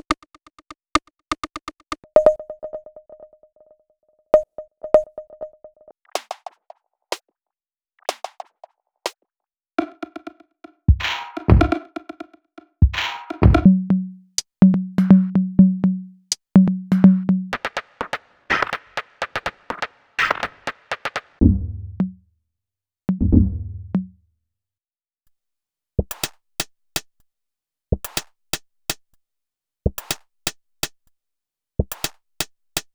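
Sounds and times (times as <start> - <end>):
minimal essential drums and percussions: 8.0 - 8.8, 9.8 - 22.2, 23.1 - 24.1, 26.0 - 27.3, 27.9 - 29.2, 29.9 - 31.2, 31.8 - 32.9.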